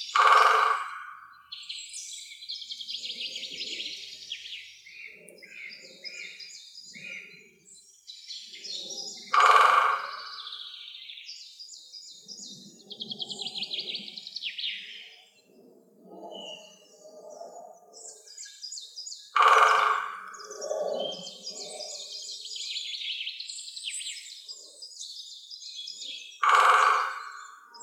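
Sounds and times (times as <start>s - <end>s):
woodpeckers Picidae: 0.1s - 1.3s, 9.1s - 10.6s, 19.3s - 22.0s, 26.4s - 27.8s.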